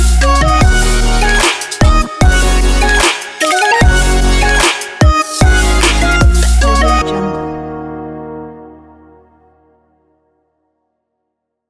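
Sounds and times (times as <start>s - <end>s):
future bass music: 0.0s - 7.7s.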